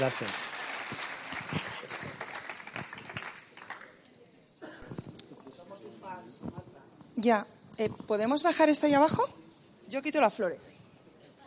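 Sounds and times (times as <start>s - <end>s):
speech: 0.0s - 1.7s, 7.2s - 10.7s
audience applause at a church gathering: 0.0s - 4.0s.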